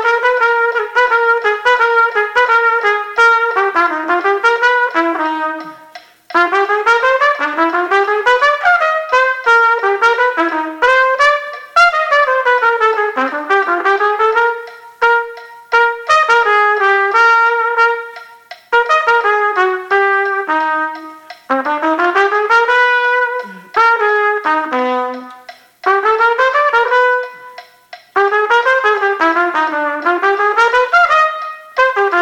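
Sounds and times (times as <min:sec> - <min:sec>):
metronome click: 0:00.0 - 0:32.2
trumpet playing along: 0:00.0 - 0:32.2.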